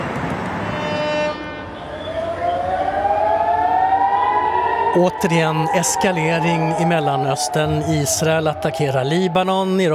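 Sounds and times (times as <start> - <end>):
air raid sirens in Haifa in northern Israel: 0.0 - 9.9
speech: 5.0 - 9.9.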